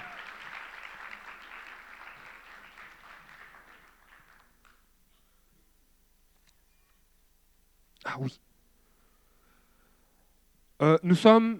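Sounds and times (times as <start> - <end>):
audience applause welcoming visitors: 0.0 - 4.9
speech: 8.1 - 8.5, 10.8 - 11.5.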